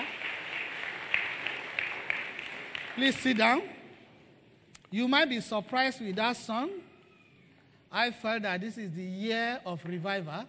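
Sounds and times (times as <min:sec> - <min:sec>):
audience clapping: 0:00.0 - 0:03.7
speech: 0:03.0 - 0:03.8, 0:04.9 - 0:06.9, 0:07.9 - 0:10.4.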